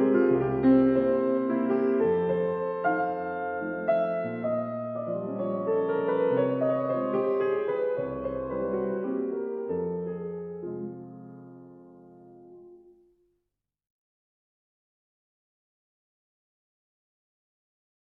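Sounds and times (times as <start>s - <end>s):
fortepiano mazurka in F minor: 0.0s - 13.2s.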